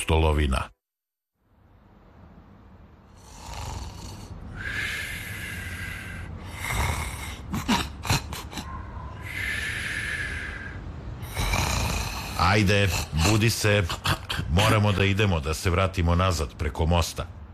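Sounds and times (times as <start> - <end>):
speech: 0.0 - 0.8, 12.4 - 17.4
person snoring while asleep: 3.1 - 13.4.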